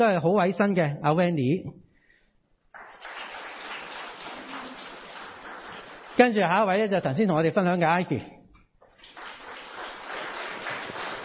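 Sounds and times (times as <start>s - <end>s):
speech: 0.0s - 1.8s, 6.2s - 8.4s
crowd applause: 2.8s - 6.3s, 9.0s - 11.2s.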